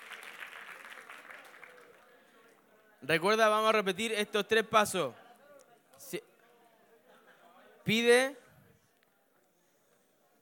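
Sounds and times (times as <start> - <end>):
audience applause: 0.0 - 2.2
speech: 3.0 - 5.2, 6.0 - 6.3, 7.9 - 8.4.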